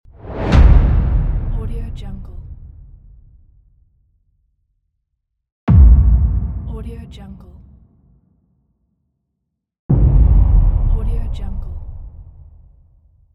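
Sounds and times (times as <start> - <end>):
boom: 0.2 - 3.5, 5.7 - 8.0, 9.9 - 13.2.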